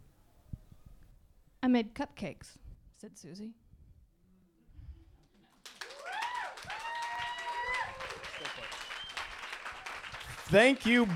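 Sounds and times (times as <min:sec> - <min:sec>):
speech: 0:01.6 - 0:03.6, 0:10.5 - 0:11.1
audience clapping: 0:05.2 - 0:11.1.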